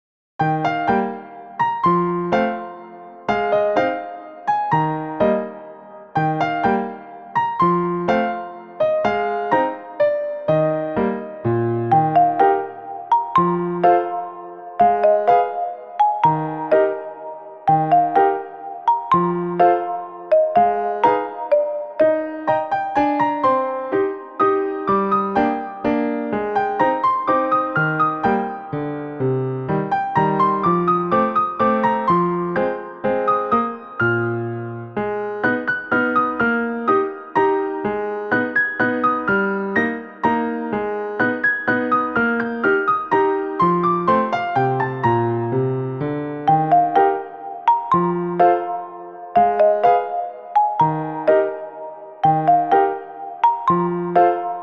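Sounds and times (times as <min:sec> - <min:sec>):
new age music: 0:00.4 - 0:54.6.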